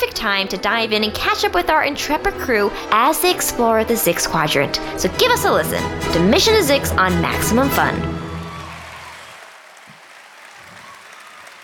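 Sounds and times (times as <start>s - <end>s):
speech: 0.2s - 8.2s
audience applause: 8.1s - 11.6s.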